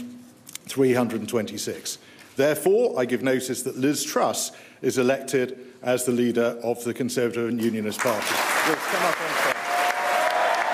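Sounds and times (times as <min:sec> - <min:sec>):
speech: 0:00.8 - 0:09.5
crowd clapping for Liz Truss's election as Conservative Party leader: 0:08.0 - 0:10.7
voices cheering: 0:08.4 - 0:10.7.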